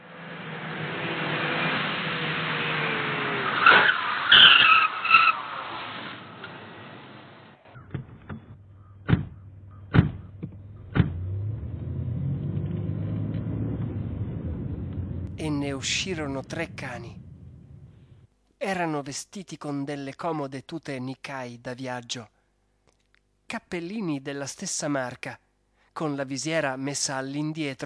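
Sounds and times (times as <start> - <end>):
taxi tires screeching to a halt: 0.0 - 7.9, 9.7 - 18.3
taxi engine roar: 0.0 - 18.3
sharp clunks: 7.7 - 11.3
taxi engine idling: 13.9 - 18.3
speech: 15.8 - 17.2, 18.6 - 22.4, 23.5 - 25.4, 26.0 - 27.8.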